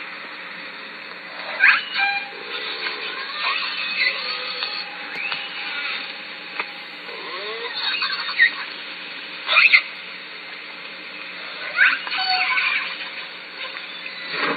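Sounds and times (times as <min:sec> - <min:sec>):
Southern Resident killer whale pulsed calls: 0:01.4 - 0:08.7, 0:11.6 - 0:14.4.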